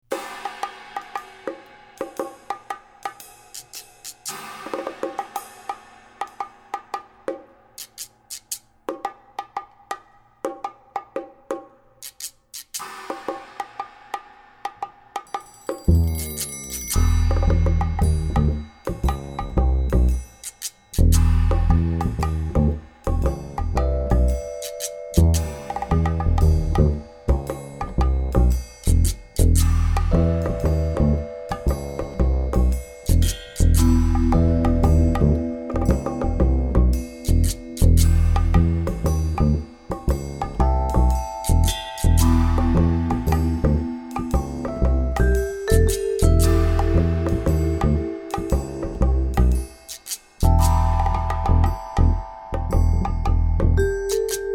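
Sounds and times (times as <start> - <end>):
jazz music: 15.9 - 54.5.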